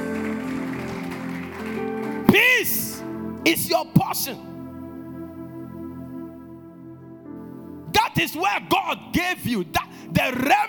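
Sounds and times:
audience clapping: 0:00.0 - 0:02.8
speech: 0:03.4 - 0:04.5, 0:08.2 - 0:10.6.

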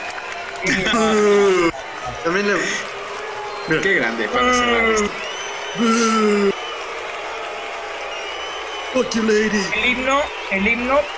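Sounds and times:
applause: 0:00.0 - 0:11.1
laughter: 0:00.5 - 0:03.0, 0:05.7 - 0:06.6
speech: 0:00.6 - 0:01.6, 0:02.2 - 0:02.9, 0:03.7 - 0:06.5, 0:09.0 - 0:11.1.

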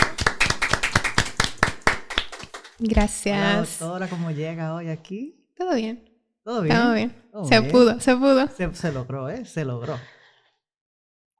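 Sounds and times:
applause greeting a guest: 0:00.0 - 0:03.3
speech: 0:02.8 - 0:10.2.

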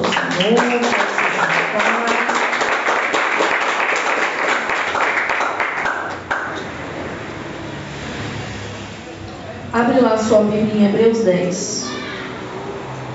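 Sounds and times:
large audience applauding: 0:00.0 - 0:06.8
speech: 0:00.4 - 0:01.1, 0:10.0 - 0:12.0.

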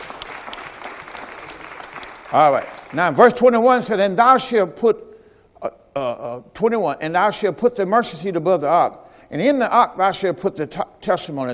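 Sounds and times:
audience clapping: 0:00.0 - 0:03.2
speech: 0:02.3 - 0:11.5.

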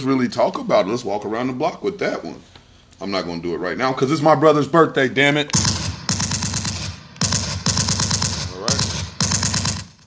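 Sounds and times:
speech: 0:00.0 - 0:05.7
rapid machine-gun style gunfire standing in for a 21 gun salute: 0:05.6 - 0:10.0.

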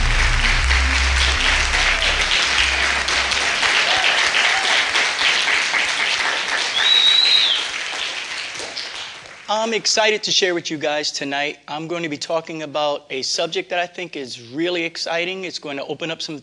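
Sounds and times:
low rumble: 0:00.0 - 0:04.1
audience hand clapping in praise: 0:00.0 - 0:09.8
whistle-like tone: 0:06.7 - 0:07.6
speech: 0:09.6 - 0:16.4.

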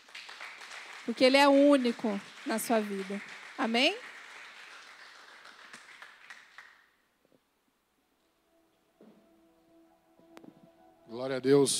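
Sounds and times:
audience applause: 0:00.0 - 0:07.0
speech: 0:01.0 - 0:04.1, 0:11.2 - 0:11.7
soft musical tones: 0:07.8 - 0:11.7.

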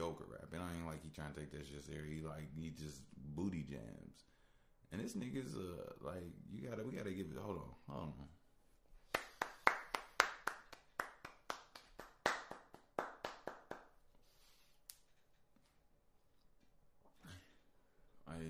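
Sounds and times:
speech: 0:00.8 - 0:08.4
hand clapping: 0:09.0 - 0:14.0.

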